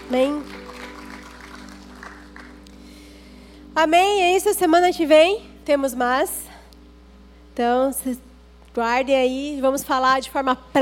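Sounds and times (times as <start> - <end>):
audience applauding: 0.0 - 2.8
faint electrical hum: 0.0 - 10.7
speech: 0.1 - 0.6, 3.8 - 6.4, 7.6 - 10.7.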